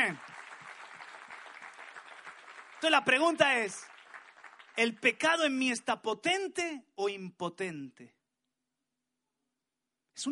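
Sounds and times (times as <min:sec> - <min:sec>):
audience clapping hands in praise: 0:00.0 - 0:05.6
speech: 0:00.1 - 0:00.3, 0:02.8 - 0:03.9, 0:04.8 - 0:08.2, 0:10.2 - 0:10.3.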